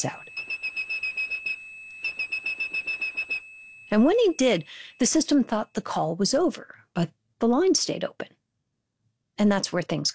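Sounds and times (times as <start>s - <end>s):
speech: 0.0s - 0.2s, 3.9s - 8.4s, 9.4s - 10.1s
person whistling a 2600 hertz phone tone: 0.0s - 5.4s.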